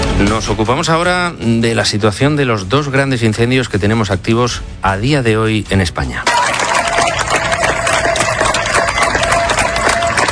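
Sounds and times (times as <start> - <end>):
speech: 0.2 - 6.5
crowd of neighbours applauding: 6.2 - 10.3.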